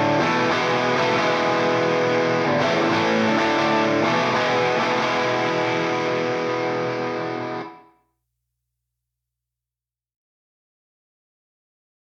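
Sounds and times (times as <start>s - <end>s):
rhythm guitar: 0.0s - 7.8s.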